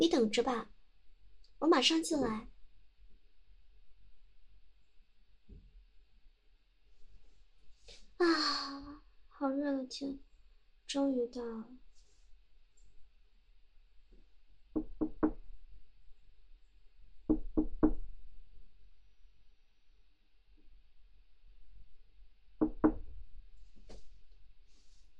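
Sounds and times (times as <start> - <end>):
speech: 0.0 - 0.8, 1.6 - 2.5, 8.2 - 10.2, 10.9 - 11.8
knocking on a door: 14.8 - 15.4, 17.3 - 18.1, 22.6 - 23.1.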